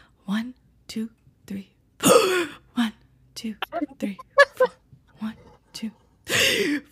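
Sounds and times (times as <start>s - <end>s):
speech: 0.3s - 1.8s, 3.4s - 6.0s
short vocal bursts: 3.6s - 4.8s
voice imitating a teacher's sharp gasping inhale: 6.3s - 6.8s.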